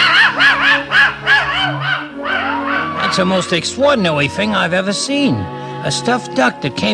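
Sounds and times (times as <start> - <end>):
dog barking: 0.0 - 3.2
speech: 3.2 - 6.9.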